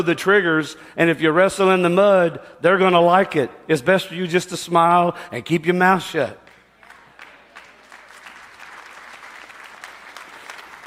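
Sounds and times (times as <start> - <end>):
speech: 0.0 - 6.4
golf clap, light polite applause: 6.4 - 10.8.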